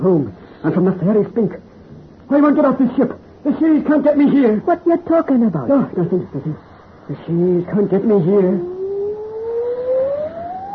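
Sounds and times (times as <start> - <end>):
speech: 0.0 - 1.6, 2.3 - 8.7
thin eerie wailing cry: 8.4 - 10.7.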